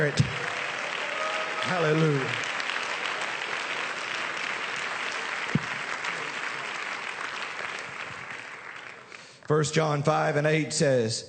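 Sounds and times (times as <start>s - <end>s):
speech: 0.0s - 0.3s, 1.7s - 2.5s, 9.5s - 11.2s
audience clapping: 0.0s - 9.6s
loud thump: 5.6s - 5.8s.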